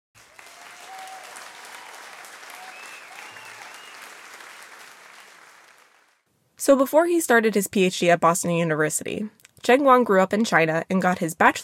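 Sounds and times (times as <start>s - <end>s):
faint whistles and cheers: 0.2s - 6.0s
crowd applause: 0.2s - 6.2s
speech: 6.6s - 11.6s.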